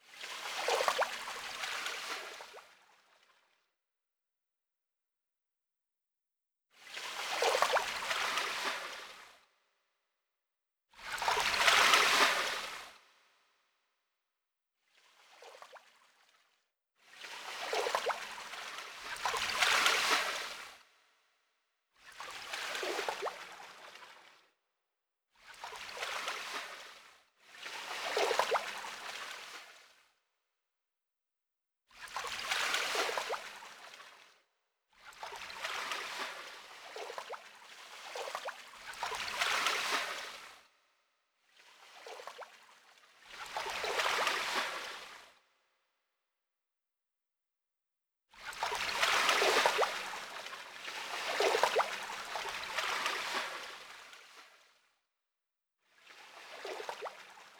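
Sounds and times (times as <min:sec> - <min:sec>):
river ambience: 0:00.0 - 0:02.9, 0:06.8 - 0:09.4, 0:11.0 - 0:13.0, 0:17.1 - 0:20.9, 0:22.2 - 0:24.3, 0:25.4 - 0:30.0, 0:32.1 - 0:34.2, 0:35.0 - 0:40.7, 0:41.6 - 0:42.6, 0:43.2 - 0:45.4, 0:48.4 - 0:54.7, 0:56.0 - 0:57.5.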